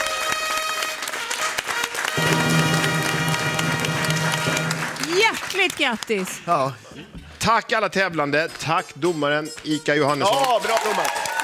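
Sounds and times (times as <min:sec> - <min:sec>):
studio audience applause: 0:00.0 - 0:06.3, 0:10.3 - 0:11.4
speech: 0:05.3 - 0:11.3.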